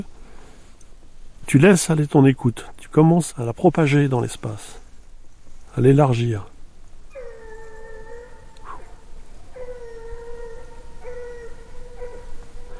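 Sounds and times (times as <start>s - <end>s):
speech: 1.5s - 4.8s, 5.8s - 6.5s
dog howling: 7.1s - 12.7s.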